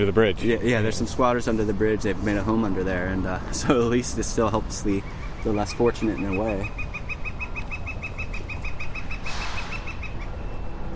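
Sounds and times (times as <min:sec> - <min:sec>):
speech: 0:00.0 - 0:06.9
woodpecker calling: 0:03.6 - 0:10.7.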